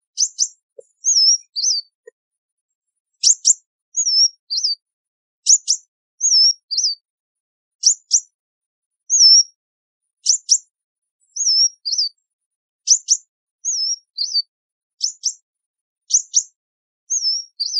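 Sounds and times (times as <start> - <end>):
sunbird chips and whistles: 0.1 - 1.9, 3.2 - 4.8, 5.5 - 7.0, 9.1 - 9.5, 11.3 - 12.2, 12.9 - 15.4, 16.1 - 16.5, 17.1 - 17.7.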